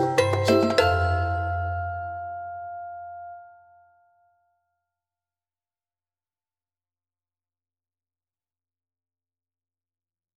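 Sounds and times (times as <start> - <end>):
marimba playing: 0.0 - 3.4.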